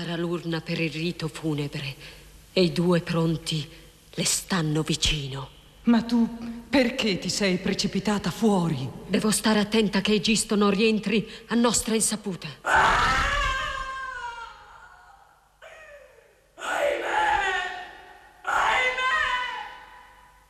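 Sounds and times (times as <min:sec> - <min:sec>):
speech: 0:00.0 - 0:13.3
anguished human screams and wails from a palace: 0:12.6 - 0:20.0.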